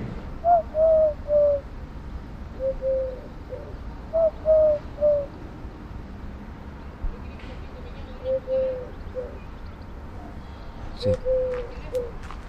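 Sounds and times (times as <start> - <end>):
Eurasian collared dove cooing in low hollow three-note phrases: 0.0 - 1.7, 2.5 - 5.4, 8.2 - 9.5, 11.0 - 12.2.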